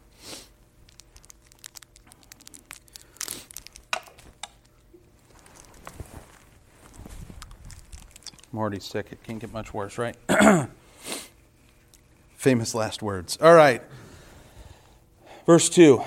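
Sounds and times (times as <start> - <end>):
small plastic cough drop wrapper being unwrapped: 0.8 - 10.2
speech: 8.6 - 10.8, 12.4 - 14.0, 15.5 - 16.0.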